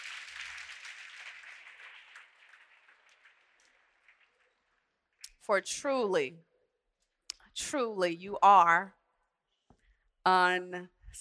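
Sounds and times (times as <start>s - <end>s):
audience hand clapping: 0.0s - 4.6s
speech: 5.5s - 6.5s, 7.6s - 9.0s, 10.3s - 11.1s.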